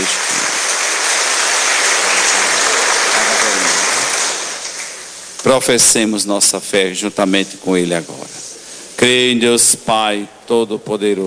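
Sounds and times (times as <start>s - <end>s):
audience applause: 0.0s - 5.2s
speech: 5.4s - 8.4s, 9.0s - 11.2s.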